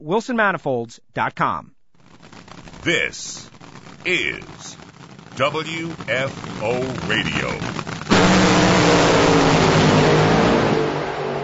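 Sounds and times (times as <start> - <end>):
speech: 0.0 - 1.8, 2.8 - 4.8, 5.4 - 9.2
drag racing car roaring down ZMAX Dragway at the NHRA Carolina Nationals: 6.3 - 11.4.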